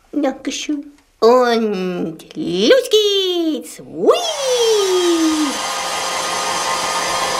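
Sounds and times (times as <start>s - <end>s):
speech: 0.1s - 5.2s
hair dryer blowing: 4.2s - 7.3s.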